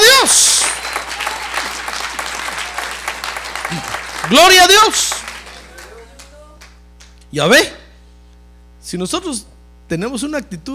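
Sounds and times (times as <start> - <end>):
audience applauding: 0.0 - 7.2
speech: 3.7 - 5.2, 7.3 - 7.8, 8.9 - 10.7.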